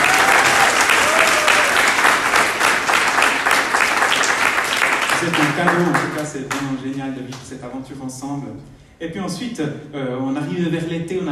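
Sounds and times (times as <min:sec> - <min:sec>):
crowd applause: 0:00.0 - 0:06.8
speech: 0:05.3 - 0:11.3.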